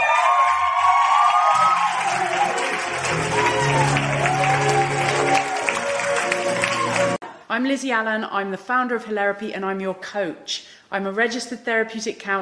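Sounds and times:
audience applause greeting an MC on stage: 0.0s - 7.2s
whoops and cheers: 0.0s - 7.2s
speech: 7.6s - 12.3s.

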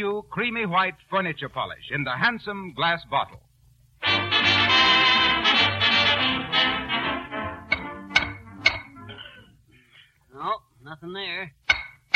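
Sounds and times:
speech: 0.0s - 3.4s, 10.4s - 11.6s
sustained tonal music: 4.0s - 9.4s.

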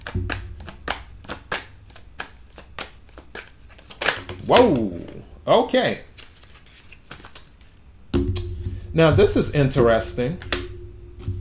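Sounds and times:
three playing cards being drawn from a deck: 0.0s - 5.2s, 6.1s - 7.8s
speech: 4.5s - 6.1s, 9.0s - 10.5s.

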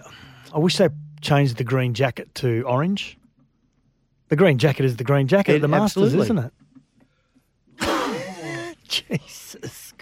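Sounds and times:
speech: 0.5s - 3.2s, 4.3s - 6.6s, 8.9s - 10.0s
person sneezing: 7.8s - 8.8s.

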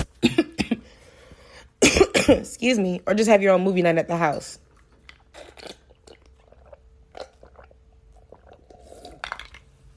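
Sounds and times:
speech: 2.3s - 4.6s
person drinking water to ease a dry throat: 4.8s - 9.9s.

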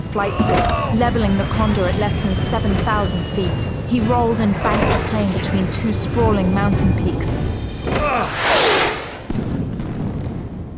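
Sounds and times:
speech: 0.2s - 8.6s
missiles exploding against mountains: 8.7s - 10.7s.

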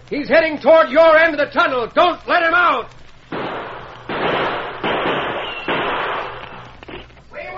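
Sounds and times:
speech: 0.1s - 3.0s
gunshots ricocheting in a tunnel: 3.3s - 6.6s.

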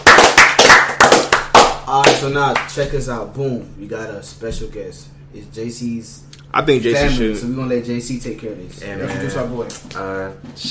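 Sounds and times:
crowd, people clapping: 0.0s - 2.8s
speech: 2.2s - 10.6s.

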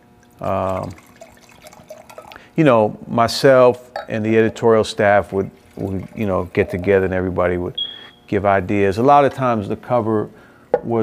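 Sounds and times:
drink pouring into a glass: 0.2s - 2.5s, 4.5s - 7.2s
speech: 0.4s - 1.1s, 2.6s - 11.0s.

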